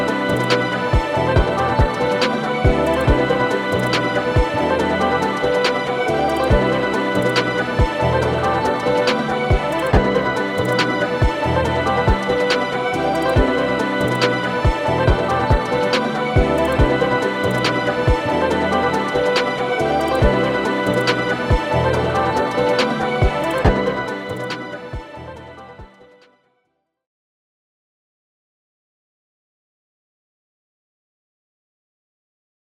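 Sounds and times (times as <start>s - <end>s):
EDM pop music: 0.0s - 26.0s.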